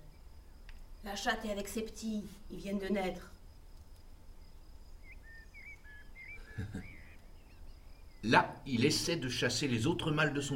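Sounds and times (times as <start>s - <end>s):
thin steady insect-like whine: 0.0s - 10.5s
speech: 1.0s - 3.4s, 8.2s - 10.5s
bird fluting whistled alarm call: 4.9s - 8.3s.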